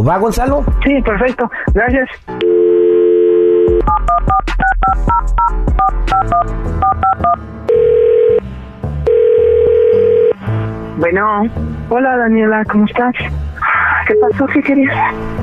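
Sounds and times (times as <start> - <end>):
speech: 0.0 - 2.6, 3.9 - 7.9, 10.5 - 13.4, 14.1 - 15.4
steady telephone dial tone: 2.4 - 4.4, 5.8 - 8.4, 9.1 - 10.4
touch-tone beeps dialling a number for a radio call: 2.4 - 8.4, 14.1 - 14.5.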